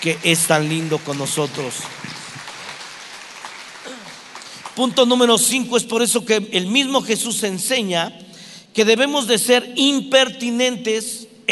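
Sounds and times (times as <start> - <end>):
speech: 0.0 - 2.2, 4.8 - 11.5
crowd applause: 0.0 - 5.4.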